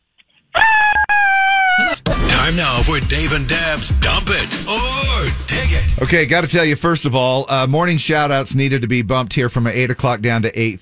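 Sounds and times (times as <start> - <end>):
woman screaming: 0.6 - 2.1
speech: 2.5 - 10.8.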